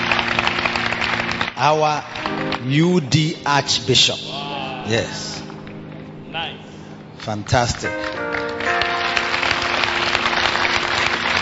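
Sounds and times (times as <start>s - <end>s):
audience clapping: 0.0s - 2.8s, 7.2s - 11.3s
sustained musical tones: 0.0s - 11.3s
speech: 1.6s - 5.4s, 7.2s - 8.4s.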